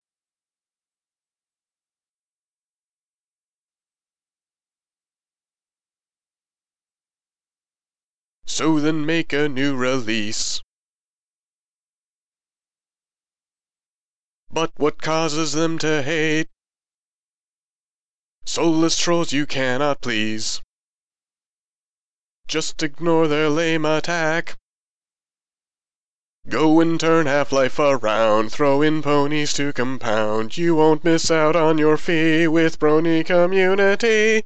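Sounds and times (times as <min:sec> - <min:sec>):
vocals: 0:08.5 - 0:10.7, 0:14.5 - 0:16.6, 0:18.4 - 0:20.7, 0:22.5 - 0:24.6, 0:26.4 - 0:34.4.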